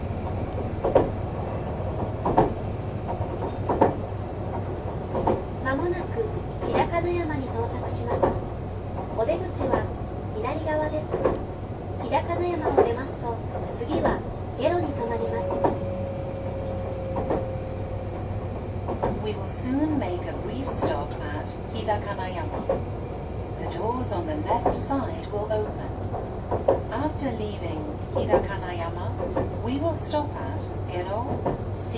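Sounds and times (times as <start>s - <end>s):
onboard train engine and motor hum: 0.0s - 31.9s
whining tone: 14.6s - 18.7s.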